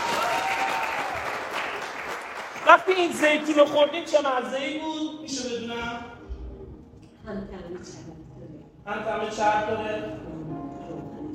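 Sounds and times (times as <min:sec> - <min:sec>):
applause at a family birthday celebration: 0:00.0 - 0:04.1
speech: 0:02.7 - 0:06.2, 0:07.3 - 0:08.2, 0:08.8 - 0:10.4.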